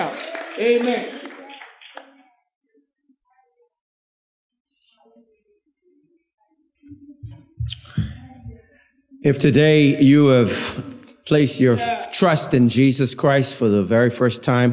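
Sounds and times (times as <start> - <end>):
crowd clapping hands: 0.0 - 2.2
speech: 0.6 - 1.3, 9.2 - 14.7.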